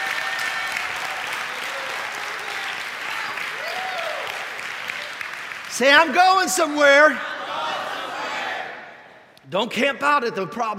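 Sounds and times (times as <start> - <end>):
people clapping in praise: 0.0 - 8.4
speech: 5.8 - 7.3, 9.5 - 10.7.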